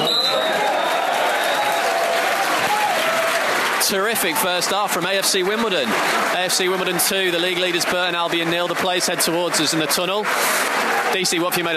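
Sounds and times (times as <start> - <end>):
whistles from a football crowd: 0.0 - 1.9
AFC Wimbledon football crowd roaring and applauding: 0.0 - 11.7
speech: 3.9 - 11.7.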